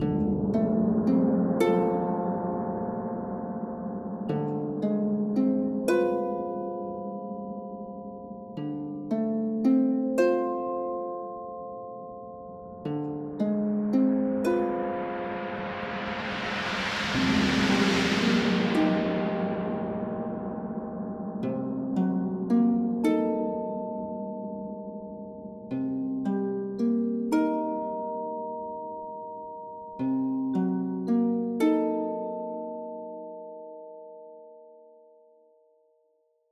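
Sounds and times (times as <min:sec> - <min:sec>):
harp: 0:00.0 - 0:35.6.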